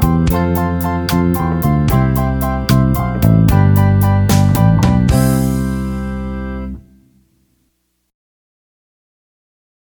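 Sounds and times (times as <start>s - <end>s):
rock music: 0.0s - 7.0s.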